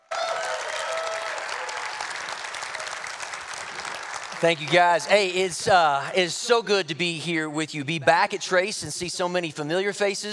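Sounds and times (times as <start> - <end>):
church audience applause welcoming a guest pastor: 0.0 - 5.5
speech: 4.4 - 10.3.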